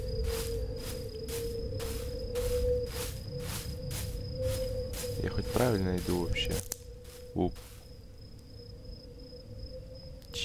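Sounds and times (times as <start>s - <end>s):
low-battery warning chirp from a device: 0.0s - 8.0s
speech: 5.2s - 6.7s, 7.4s - 7.7s.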